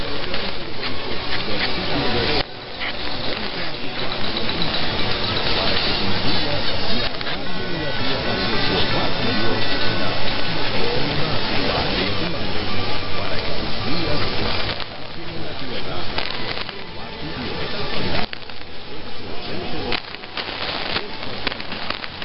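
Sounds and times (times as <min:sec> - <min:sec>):
chimes: 0:00.0 - 0:22.2.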